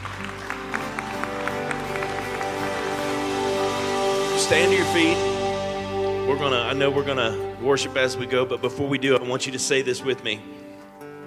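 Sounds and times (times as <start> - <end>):
audience clapping: 0.0 - 5.1
held musical tone: 0.0 - 11.1
speech: 4.4 - 5.3, 6.3 - 10.5.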